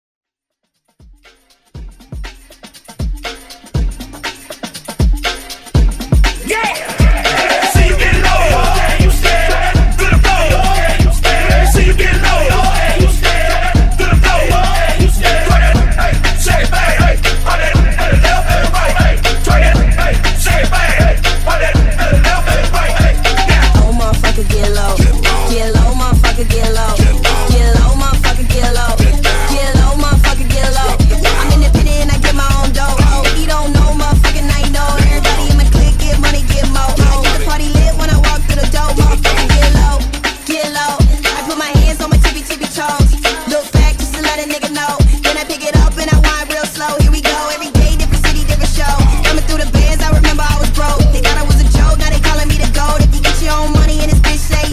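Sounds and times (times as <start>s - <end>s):
Baltimore club music: 1.0s - 54.7s.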